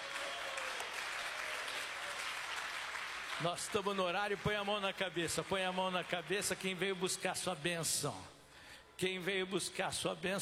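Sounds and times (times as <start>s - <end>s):
audience clapping hands: 0.0s - 7.6s
speech: 3.4s - 8.4s, 9.0s - 10.4s.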